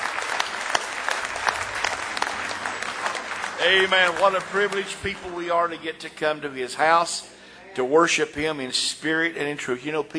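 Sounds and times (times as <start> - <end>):
audience hand clapping: 0.0 - 6.4
speech: 3.6 - 10.1.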